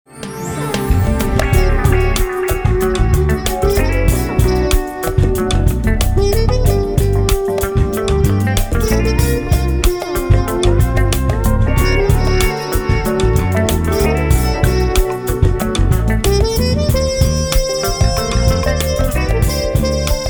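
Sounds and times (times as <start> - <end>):
jazz music: 0.1 - 20.2.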